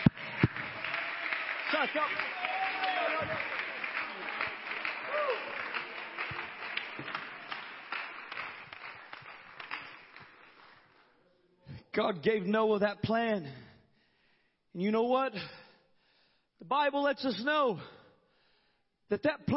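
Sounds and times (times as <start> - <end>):
crowd clapping hands: 0.0 - 11.1
speech: 1.7 - 2.6, 12.0 - 13.6, 14.8 - 15.6, 16.7 - 17.9, 19.1 - 19.5.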